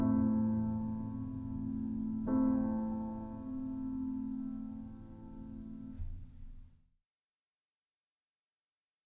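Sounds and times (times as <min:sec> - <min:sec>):
slow piano piece: 0:00.0 - 0:06.8.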